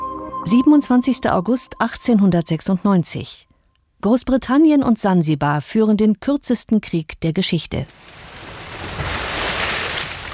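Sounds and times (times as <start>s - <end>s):
speech: 0.5s - 3.5s, 4.0s - 8.2s
gentle sea waves lapping at harbour: 7.9s - 10.3s.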